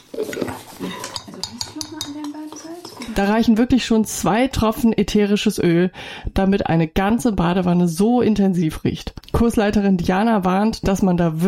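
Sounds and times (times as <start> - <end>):
spoon stirring salt and baking soda mixture: 0.0 - 3.7
speech: 3.2 - 11.4.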